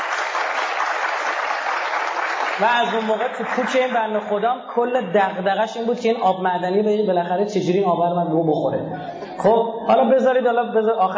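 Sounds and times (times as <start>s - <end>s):
audience clapping: 0.0s - 4.3s
speech: 2.6s - 11.1s.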